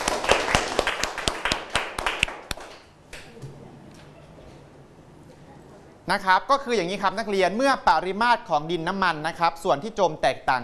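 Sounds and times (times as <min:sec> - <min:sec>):
classroom students clapping for classmates: 0:00.0 - 0:03.3
speech: 0:06.1 - 0:10.6.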